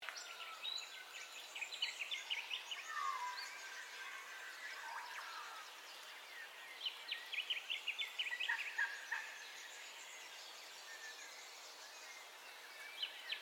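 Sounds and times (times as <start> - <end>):
birds chirping and whistling in a dawn chorus: 0.3 - 13.3.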